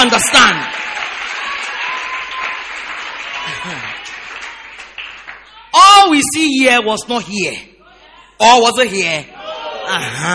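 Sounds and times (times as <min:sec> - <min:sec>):
speech: 0:00.0 - 0:00.8, 0:03.4 - 0:04.0, 0:06.0 - 0:07.7, 0:08.4 - 0:10.3
audience clapping: 0:00.0 - 0:05.6.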